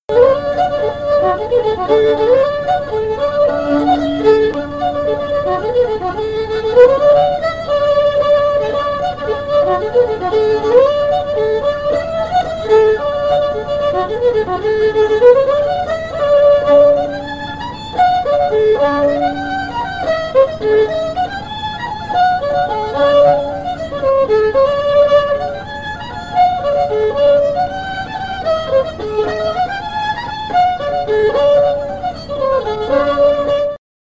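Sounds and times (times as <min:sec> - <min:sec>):
fiddle: 0:00.0 - 0:33.8.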